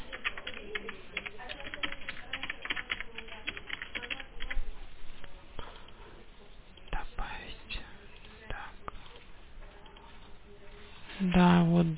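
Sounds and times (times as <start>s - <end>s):
fingers typing on a computer keyboard: 0.0s - 4.6s
speech: 11.2s - 11.9s.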